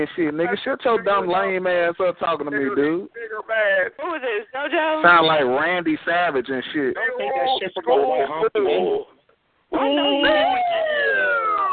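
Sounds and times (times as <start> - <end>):
speech: 0.0 - 9.1, 9.7 - 11.4
police siren: 9.8 - 11.7.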